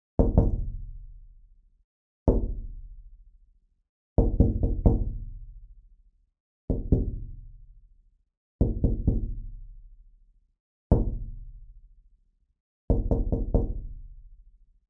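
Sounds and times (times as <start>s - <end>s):
knocking on window: 0.2s - 0.8s, 2.3s - 2.6s, 4.2s - 5.1s, 6.7s - 7.3s, 8.6s - 9.4s, 10.9s - 11.2s, 12.9s - 13.8s.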